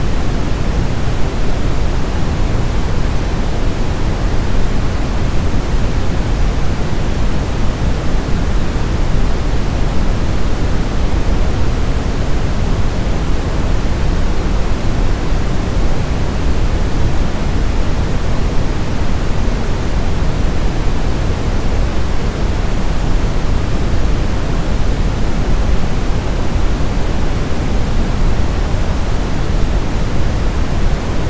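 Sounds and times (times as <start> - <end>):
brown noise: 0.0 - 31.2.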